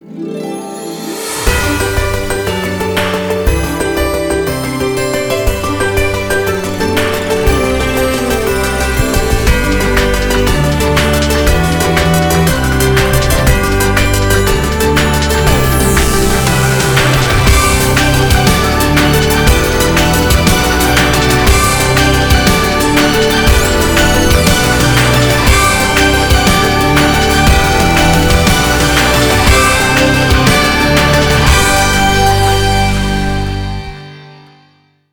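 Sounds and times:
TV commercial music: 0:00.0 - 0:34.6.

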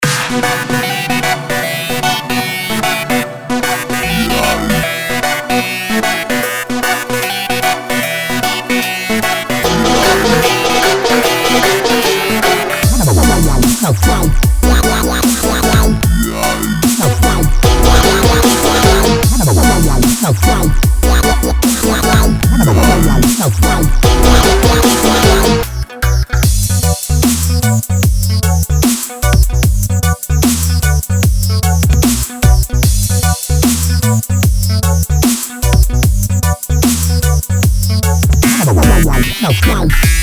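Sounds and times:
abnormal dubstep music: 0:00.0 - 0:40.2.

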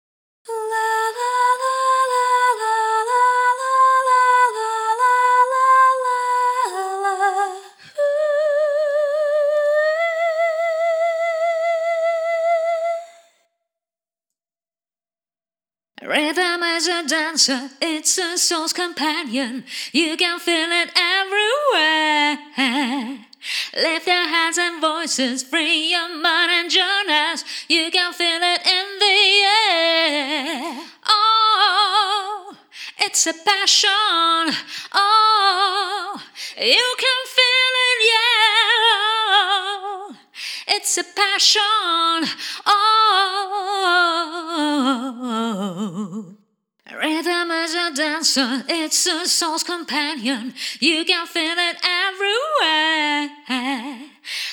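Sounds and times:
a cappella singing: 0:00.5 - 0:13.4, 0:16.0 - 0:54.5.

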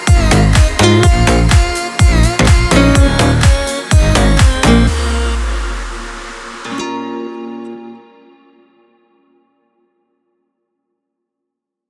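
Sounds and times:
electro remix music: 0:00.0 - 0:08.5.

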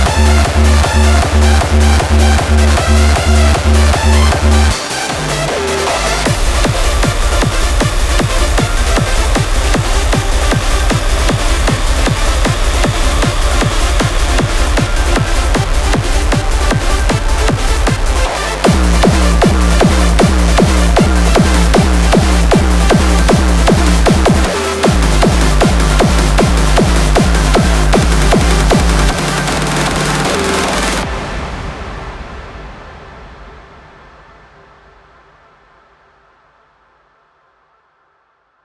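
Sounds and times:
kick drum: 0:00.0 - 0:05.3, 0:06.3 - 0:31.1
synth: 0:00.0 - 0:35.0.

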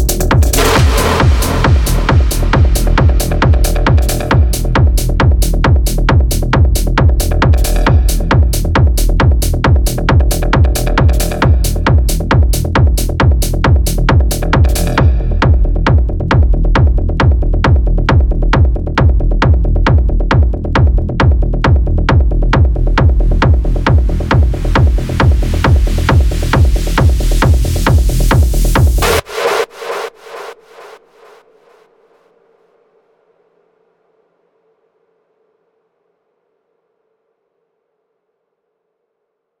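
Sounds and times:
techno music: 0:00.0 - 0:30.1.

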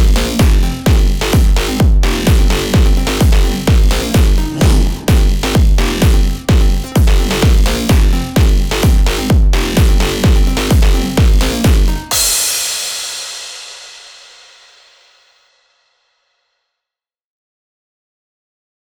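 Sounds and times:
dark hard house music: 0:00.0 - 0:12.4.

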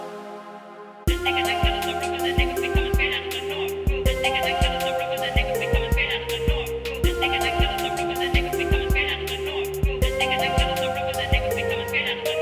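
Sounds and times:
phonk music: 0:01.1 - 0:12.3.

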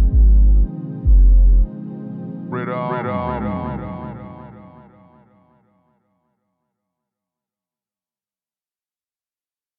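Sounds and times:
soulful singing: 0:00.0 - 0:05.1.

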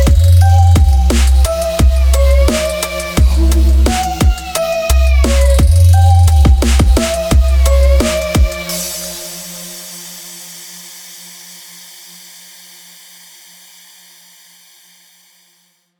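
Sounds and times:
beats: 0:00.0 - 0:09.2.

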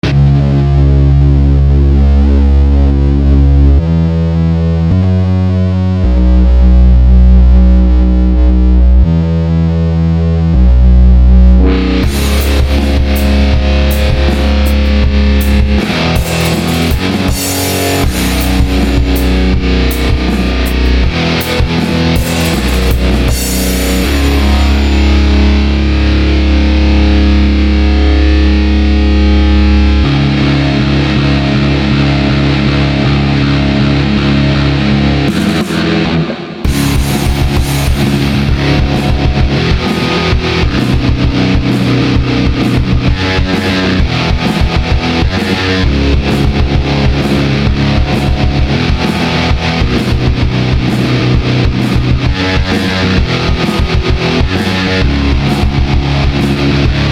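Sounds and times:
fuzz stoner rock: 0:00.0 - 0:57.1.

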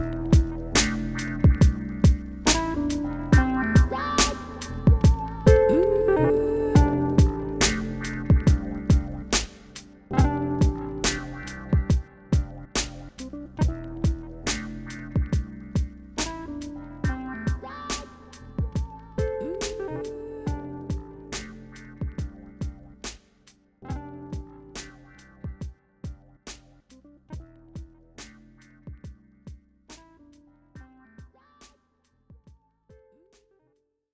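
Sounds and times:
music beat: 0:00.0 - 0:06.0, 0:06.7 - 0:23.3, 0:23.9 - 0:26.7.

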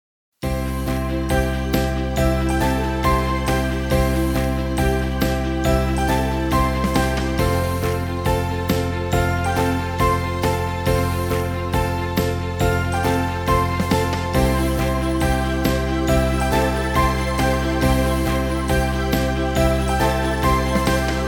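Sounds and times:
motivational march background music: 0:00.5 - 0:21.2.

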